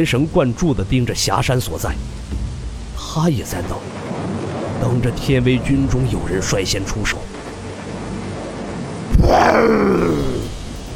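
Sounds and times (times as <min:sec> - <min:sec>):
speech: 0:00.0 - 0:02.3, 0:03.0 - 0:04.0, 0:04.8 - 0:07.3, 0:09.3 - 0:10.4
realistic wild beast roar: 0:09.1 - 0:10.6.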